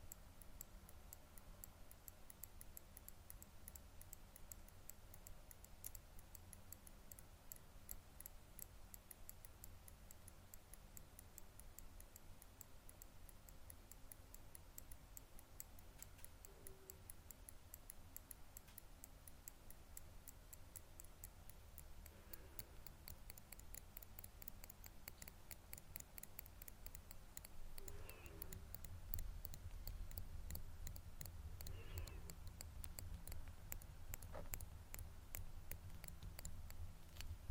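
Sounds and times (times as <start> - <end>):
tweezers clicking: 0.0 - 37.4.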